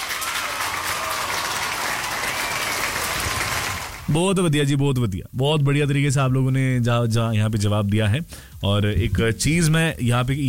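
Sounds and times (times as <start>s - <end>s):
applause sound effect for correct quiz answers: 0.0s - 4.1s
speech: 4.1s - 10.4s.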